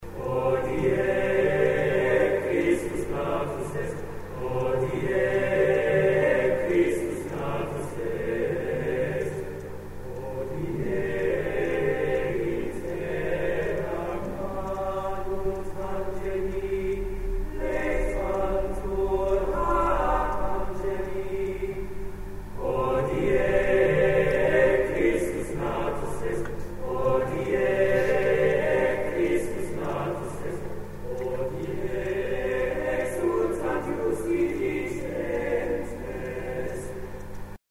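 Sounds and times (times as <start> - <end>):
TTBB male choir singing: 0.0 - 37.3.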